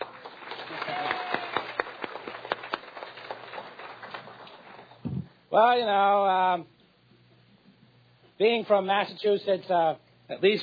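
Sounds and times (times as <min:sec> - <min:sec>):
audience applause: 0:00.0 - 0:05.0
speech: 0:05.6 - 0:06.8, 0:08.4 - 0:10.6.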